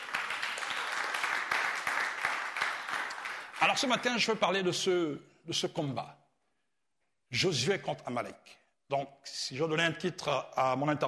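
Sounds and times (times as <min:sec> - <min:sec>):
congregation applauding during a church sermon: 0:00.0 - 0:04.6
speech: 0:03.6 - 0:06.2, 0:07.3 - 0:11.0.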